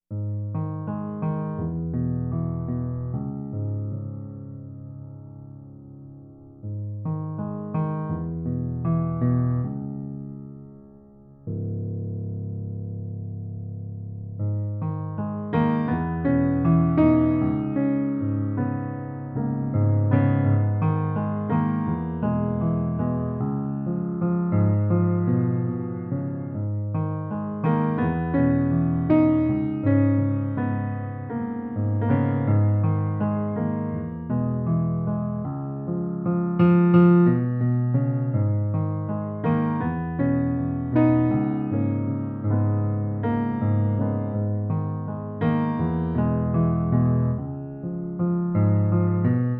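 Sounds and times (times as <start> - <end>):
piano: 0.0 - 49.5.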